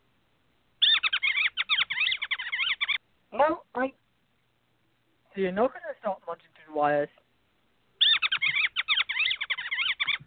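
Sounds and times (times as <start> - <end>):
mice squeaking: 0.8 - 3.0, 8.0 - 10.2
speech: 3.3 - 4.0, 5.4 - 7.2.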